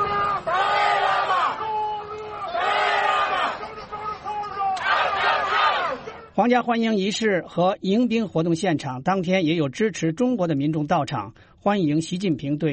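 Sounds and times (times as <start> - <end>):
protesters chanting slogans during Xi Jinping's state visit to Britain: 0.0 - 6.3
crowd noise: 0.0 - 6.5
speech: 6.4 - 12.7.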